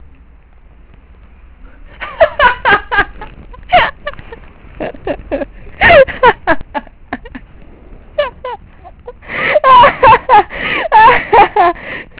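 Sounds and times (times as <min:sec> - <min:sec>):
person laughing: 0:01.9 - 0:07.5, 0:08.2 - 0:11.8.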